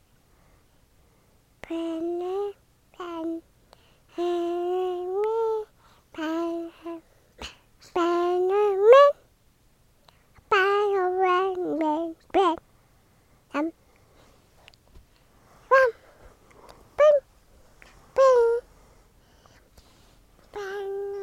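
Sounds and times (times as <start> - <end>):
17-month-old toddler singing: 1.7 - 3.5, 4.1 - 7.0, 7.9 - 9.2, 10.5 - 12.6, 13.5 - 13.7, 15.7 - 16.0, 16.9 - 17.3, 18.1 - 18.7, 20.5 - 21.2.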